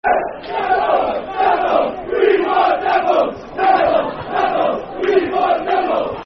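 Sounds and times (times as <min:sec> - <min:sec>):
football crowd chanting: 0:00.0 - 0:06.2
laughter: 0:00.4 - 0:06.2.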